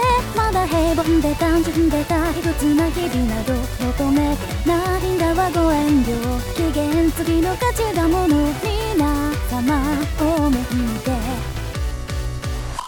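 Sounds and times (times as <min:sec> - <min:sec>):
synthesized singing voice before tuning: 0:00.0 - 0:11.8.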